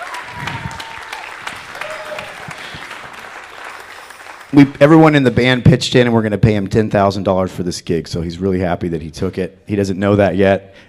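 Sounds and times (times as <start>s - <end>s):
audience clapping: 0.0s - 5.9s
speech: 4.5s - 10.8s.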